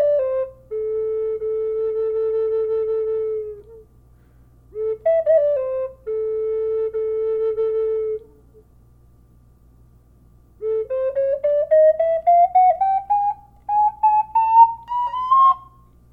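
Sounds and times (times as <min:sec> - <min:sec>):
flute playing: 0:00.0 - 0:03.9, 0:04.7 - 0:08.4, 0:10.6 - 0:15.9.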